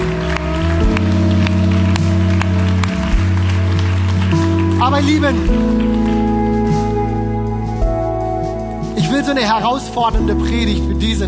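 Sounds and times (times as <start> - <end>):
audience applauding: 0.0 - 7.2
droning keyboard chords: 0.0 - 11.2
speech: 5.0 - 5.8, 9.3 - 11.2.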